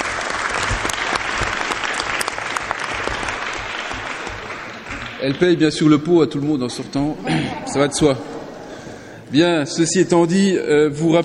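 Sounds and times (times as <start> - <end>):
audience applause: 0.0 - 5.6
speech: 5.2 - 8.4, 9.3 - 11.2.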